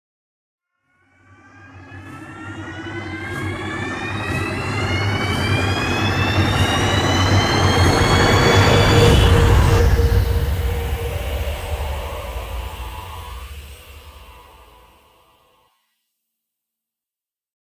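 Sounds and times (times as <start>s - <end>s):
trailer spinner sound effect: 1.3s - 14.9s.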